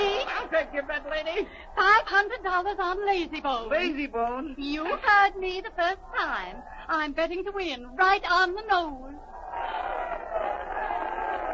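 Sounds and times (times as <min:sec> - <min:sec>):
laughter: 0:00.0 - 0:02.4, 0:09.4 - 0:11.5
speech: 0:00.5 - 0:09.8
racetrack crowd yelling and cheering: 0:09.2 - 0:11.5.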